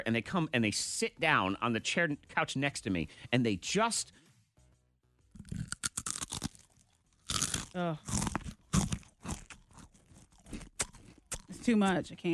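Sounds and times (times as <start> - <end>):
speech: 0.0 - 4.2, 7.7 - 8.4, 11.6 - 12.3
Cheez-It cracker being chewed: 5.4 - 12.0.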